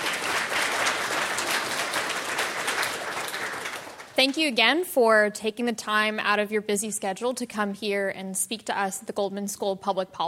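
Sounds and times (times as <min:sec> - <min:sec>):
crowd applause: 0:00.0 - 0:04.2
speech: 0:04.2 - 0:10.2.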